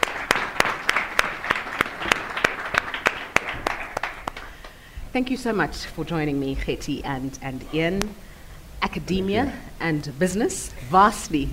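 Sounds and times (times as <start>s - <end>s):
audience applause: 0.0s - 4.9s
speech: 5.2s - 8.3s, 8.9s - 11.5s.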